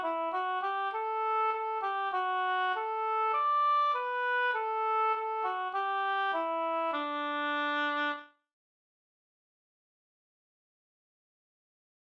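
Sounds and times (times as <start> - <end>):
folk song melody: 0.0 - 8.2.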